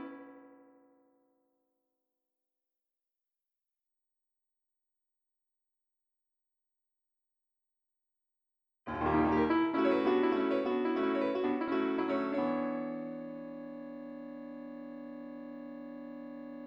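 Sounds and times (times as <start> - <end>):
piano: 8.9 - 16.6.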